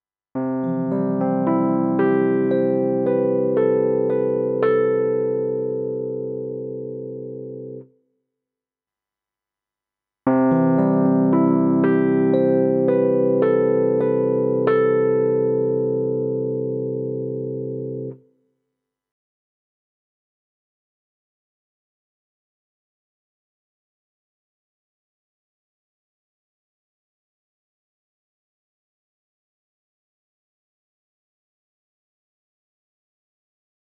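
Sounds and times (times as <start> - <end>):
electric piano: 0.4 - 7.9, 10.3 - 18.2.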